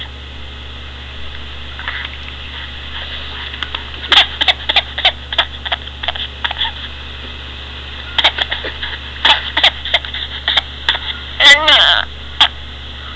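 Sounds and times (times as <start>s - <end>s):
person giggling: 3.4s - 7.0s, 8.0s - 12.6s.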